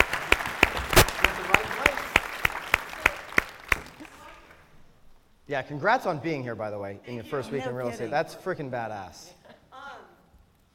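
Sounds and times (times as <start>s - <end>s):
applause: 0.0s - 4.6s
speech: 5.5s - 9.4s.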